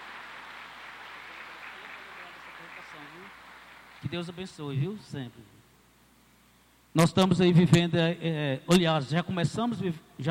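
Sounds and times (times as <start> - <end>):
applause: 0.0 - 4.7
speech: 4.0 - 5.6, 6.9 - 10.3.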